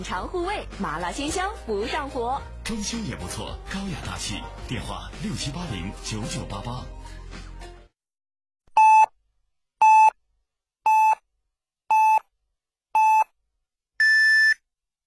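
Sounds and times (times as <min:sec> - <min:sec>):
speech: 0:00.0 - 0:07.0
hourly radio time signal beeps: 0:10.9 - 0:11.2, 0:11.9 - 0:12.2, 0:13.0 - 0:13.3, 0:14.0 - 0:14.6.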